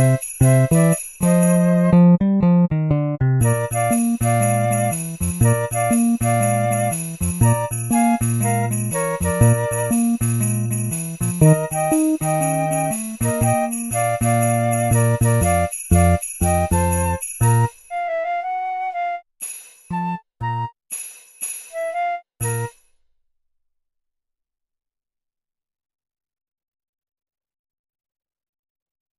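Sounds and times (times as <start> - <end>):
jazz arrangement of a Christmas tune: 0.0 - 22.8.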